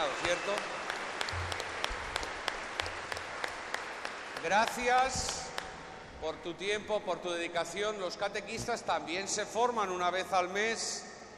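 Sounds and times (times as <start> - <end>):
speech: 0.0 - 1.4, 4.4 - 5.4, 6.2 - 11.1
applause: 0.0 - 6.0.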